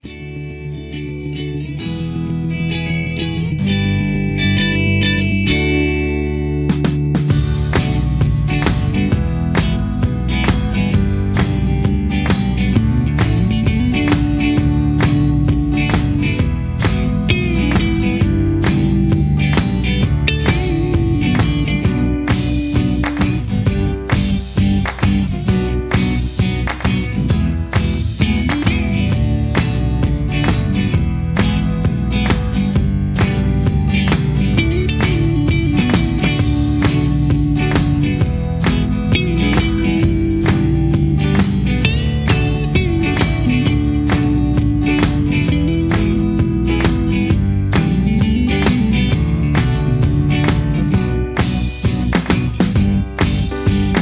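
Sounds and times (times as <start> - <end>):
instrumental music without leads: 0.0 - 54.0.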